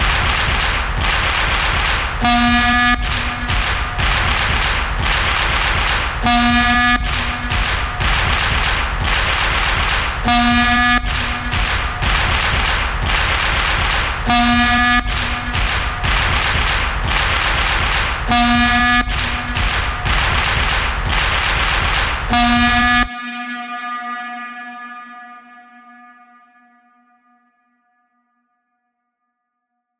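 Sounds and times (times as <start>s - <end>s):
sports fans clapping rhythmically: 0.0s - 23.2s
horn: 2.2s - 16.5s, 18.2s - 20.5s, 22.3s - 25.1s.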